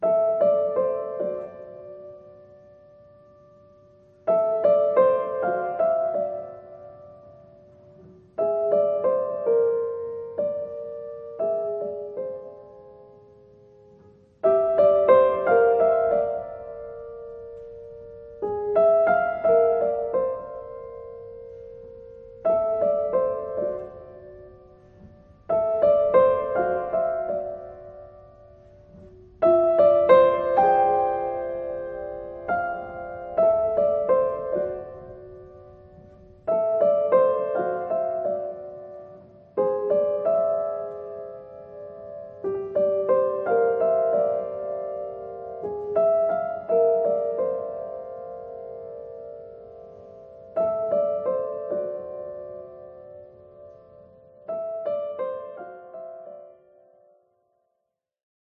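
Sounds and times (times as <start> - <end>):
piano piece: 0.0 - 57.8.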